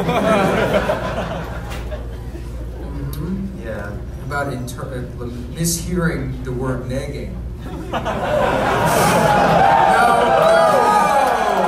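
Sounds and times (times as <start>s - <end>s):
speech: 0.0s - 1.2s, 4.3s - 9.8s
crowd cheering and laughing: 0.0s - 2.9s, 7.6s - 11.6s
whoops from the crowd: 9.1s - 11.6s.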